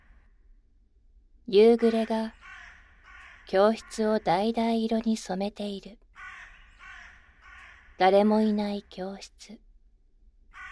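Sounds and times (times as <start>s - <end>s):
speech: 1.5s - 2.4s, 3.5s - 6.0s, 8.0s - 9.6s
crows cawing at dusk: 1.9s - 4.3s, 6.1s - 8.0s, 10.5s - 10.7s.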